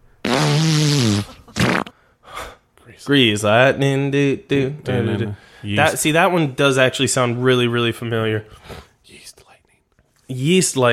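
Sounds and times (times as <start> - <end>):
queef: 0.2 - 2.0
speech: 2.9 - 9.2, 10.3 - 10.9.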